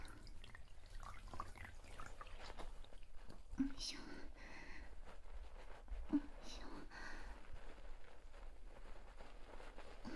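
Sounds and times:
wet sponge lathering soap: 0.0s - 3.7s, 4.5s - 10.1s
small drips: 0.0s - 3.9s
speech: 3.6s - 4.1s.

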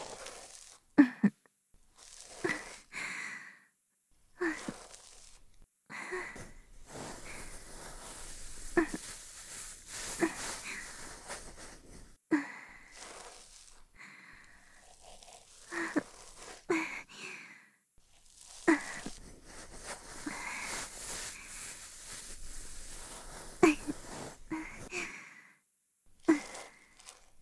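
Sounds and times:
binaural ear cleaning: 2.0s - 2.9s, 4.4s - 5.5s, 6.1s - 16.7s, 18.1s - 25.0s, 26.2s - 27.4s
binaural breathing during ear cleaning: 2.2s - 3.7s, 5.9s - 17.8s, 18.8s - 25.6s, 26.3s - 27.2s.

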